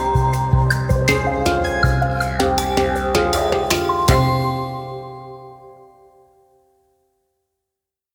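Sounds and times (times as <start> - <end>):
hang drum: 0.0 - 5.8.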